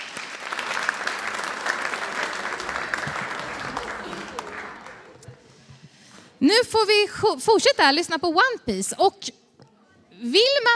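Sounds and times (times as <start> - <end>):
audience applause: 0.0 - 5.4
speech: 6.4 - 9.4, 10.2 - 10.7.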